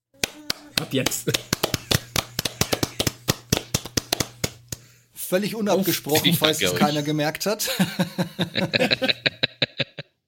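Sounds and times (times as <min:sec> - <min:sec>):
hand clapping applause: 0:00.2 - 0:04.9
speech: 0:00.8 - 0:01.6, 0:05.3 - 0:09.4
laughter: 0:01.1 - 0:03.2, 0:07.6 - 0:10.2.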